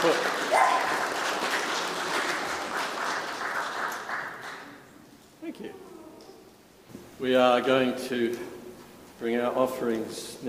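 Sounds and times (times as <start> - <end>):
audience clapping: 0.0 - 4.9
speech: 7.2 - 8.5, 9.2 - 10.4.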